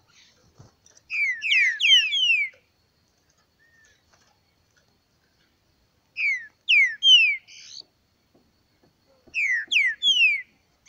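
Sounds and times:
green-winged saltator song of downslurred whistled notes: 0:01.1 - 0:02.6, 0:06.2 - 0:07.8, 0:09.3 - 0:10.8.

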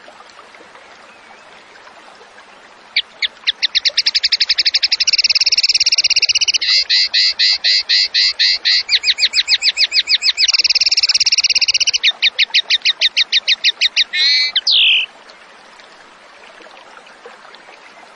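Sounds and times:
zebra finch trilling: 0:03.5 - 0:15.1.

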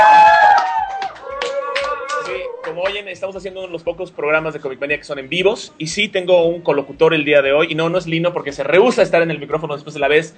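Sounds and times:
slow scattered hand claps: 0:00.2 - 0:03.0
speech: 0:03.1 - 0:10.3.

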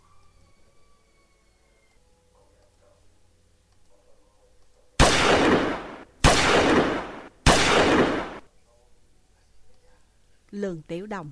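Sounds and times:
gunshots from a gun in an audio drama: 0:05.0 - 0:08.4
speech: 0:10.6 - 0:11.3.

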